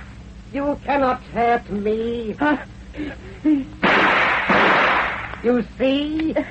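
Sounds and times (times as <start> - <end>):
speech: 0.5 - 4.2, 5.4 - 6.4
gunshot in a dark tomb: 3.8 - 5.3.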